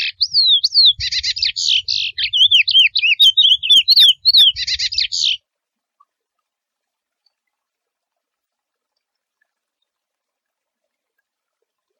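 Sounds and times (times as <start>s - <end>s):
wild curió seedeater singing: 0.0s - 5.4s.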